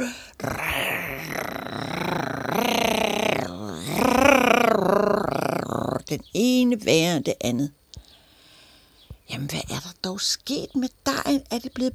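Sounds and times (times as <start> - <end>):
person imitating snoring: 0.0 - 6.1
speech: 6.1 - 7.8, 10.2 - 11.9.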